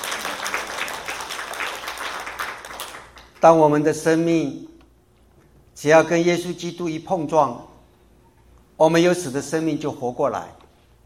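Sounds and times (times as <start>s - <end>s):
audience applause: 0.0s - 3.3s
speech: 3.4s - 4.7s, 5.8s - 7.7s, 8.8s - 10.6s.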